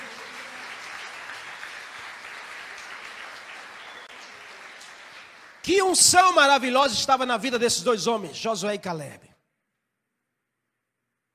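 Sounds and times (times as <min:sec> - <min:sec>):
audience applause: 0:00.0 - 0:06.4
speech: 0:05.6 - 0:09.3.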